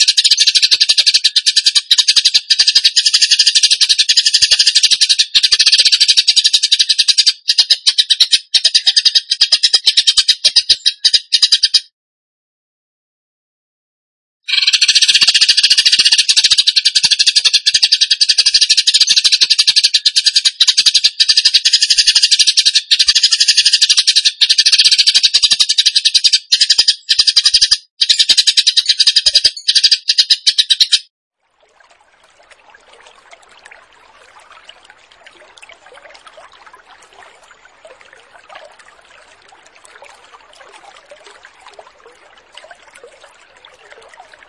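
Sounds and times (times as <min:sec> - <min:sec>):
bird song: 0:00.0 - 0:11.9, 0:14.5 - 0:31.1.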